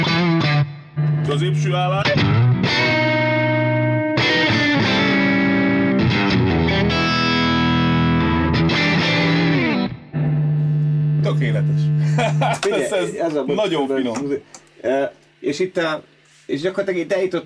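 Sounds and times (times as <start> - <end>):
distorted electric guitar through tube amplifier playing chords: 0.0 - 13.0
speech: 1.3 - 2.8, 11.3 - 17.4
laughter: 12.0 - 13.3.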